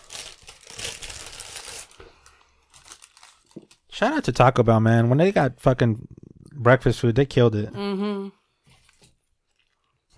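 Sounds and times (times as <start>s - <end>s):
Crunchwrap food wrapper being unwrapped: 0.0s - 3.9s, 8.8s - 10.1s
speech: 4.0s - 8.4s.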